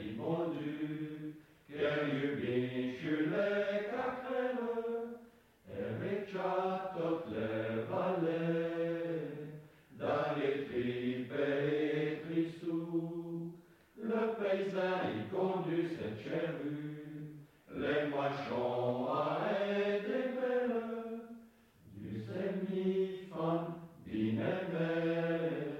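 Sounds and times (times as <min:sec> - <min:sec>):
chanting in Patois: 0:00.0 - 0:25.7.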